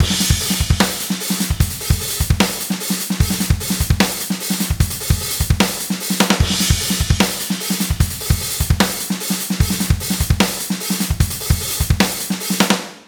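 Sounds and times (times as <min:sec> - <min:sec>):
groove beat: 0:00.0 - 0:12.8.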